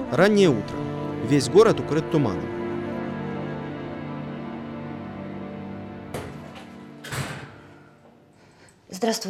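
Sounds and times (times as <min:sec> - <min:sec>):
speech: 0:00.1 - 0:02.6, 0:09.0 - 0:09.2
door opening: 0:06.1 - 0:07.9.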